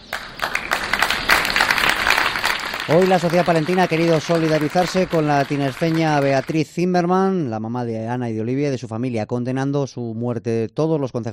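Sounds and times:
tribute applause in town square: 0:00.0 - 0:06.7
speech: 0:02.9 - 0:11.3.

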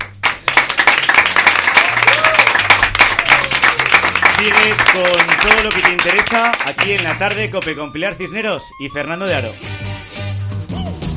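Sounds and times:
applause: 0:00.0 - 0:07.8
speech: 0:04.4 - 0:09.7.

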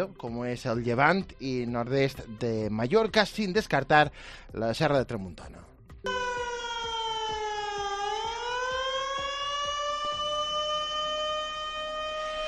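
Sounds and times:
speech: 0:00.0 - 0:06.2
flood warning siren wailing: 0:06.1 - 0:12.4.

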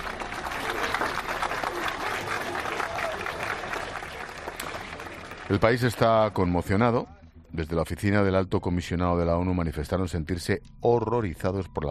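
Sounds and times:
crowd of mourners applauding: 0:00.0 - 0:07.0
speech: 0:05.5 - 0:11.8.

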